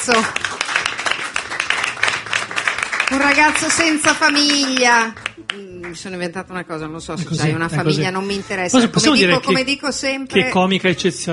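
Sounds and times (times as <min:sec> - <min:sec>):
audience applause at a live comedy show: 0:00.0 - 0:06.2
speech: 0:00.1 - 0:00.5, 0:03.2 - 0:11.3.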